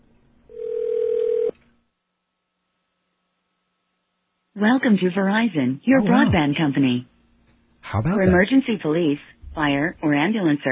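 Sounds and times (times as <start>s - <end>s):
steady mid-pitch telephone tone: 0.5s - 1.6s
speech: 4.6s - 7.1s, 7.9s - 10.7s.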